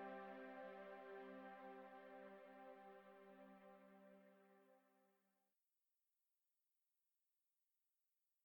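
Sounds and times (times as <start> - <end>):
ambient music: 0.0 - 4.8.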